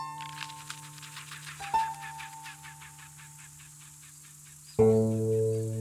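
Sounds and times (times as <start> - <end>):
black woodpecker giving loud harmonic-rich calls: 0.2 - 5.7.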